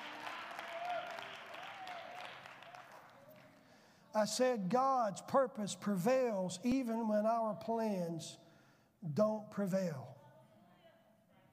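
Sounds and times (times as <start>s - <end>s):
audience hand clapping: 0.0s - 3.8s
speech: 4.2s - 8.4s, 9.0s - 10.1s.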